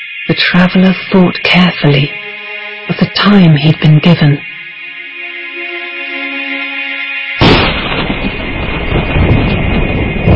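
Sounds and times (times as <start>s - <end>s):
speech: 0.3s - 2.2s, 2.9s - 4.5s
thunder: 7.4s - 10.3s.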